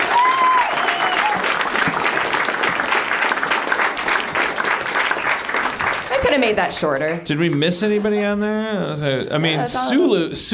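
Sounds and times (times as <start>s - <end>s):
high whoops from an audience: 0.0s - 1.5s
audience applause at a live show: 0.0s - 8.0s
speech: 6.4s - 10.5s.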